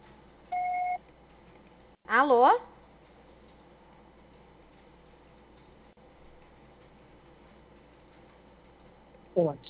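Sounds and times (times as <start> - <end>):
voicemail beep: 0.5 - 1.0
speech: 2.1 - 2.7, 9.4 - 9.6.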